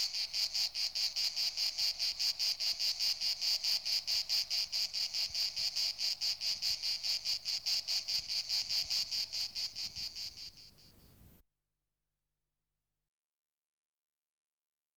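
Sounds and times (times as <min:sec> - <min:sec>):
insect chirping in high-pitched pulses: 0:00.0 - 0:11.4.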